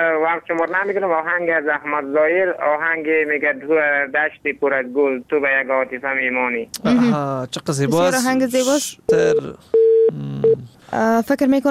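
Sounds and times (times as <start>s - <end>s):
speech: 0.0s - 11.6s
telephone line beeps after a phone call cuts off: 9.1s - 10.6s.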